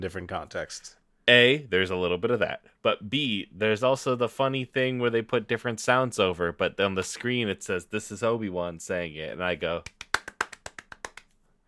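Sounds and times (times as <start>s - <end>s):
speech: 0.0s - 10.0s
fast sharp hand clapping like a seal: 9.8s - 11.4s.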